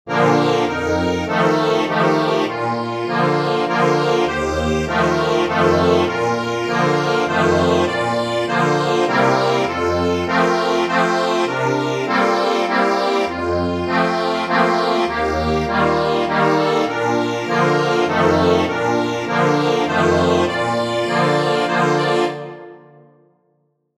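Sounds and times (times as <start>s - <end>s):
accordion: 0.1s - 23.0s.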